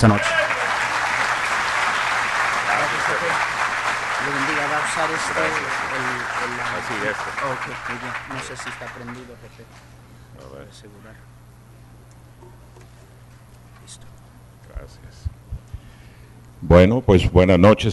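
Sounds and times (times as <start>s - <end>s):
speech: 0.0s - 0.4s, 4.2s - 11.4s, 13.9s - 14.1s, 14.8s - 15.4s, 16.6s - 17.9s
audience applause: 0.0s - 9.5s.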